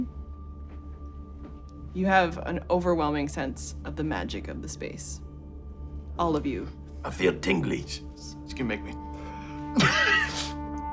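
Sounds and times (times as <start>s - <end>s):
speech: 2.0s - 5.2s, 6.2s - 9.0s
person sneezing: 9.8s - 10.6s.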